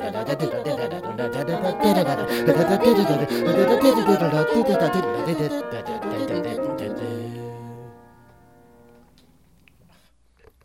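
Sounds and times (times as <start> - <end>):
person singing two octave vocal exercises: 0.0 - 8.0.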